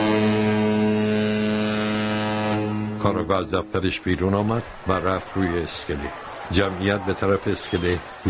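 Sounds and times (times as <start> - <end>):
long blast of a ship's horn: 0.0 - 3.8
speech: 3.0 - 8.2.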